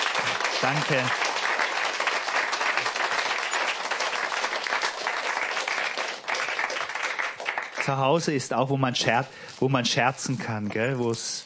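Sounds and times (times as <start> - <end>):
audience applause: 0.0 - 8.3
speech: 0.6 - 1.2, 7.9 - 11.4.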